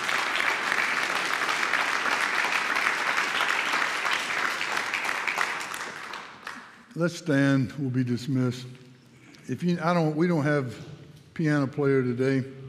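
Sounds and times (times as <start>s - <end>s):
audience clapping: 0.0s - 6.9s
speech: 7.0s - 8.8s, 9.5s - 12.6s.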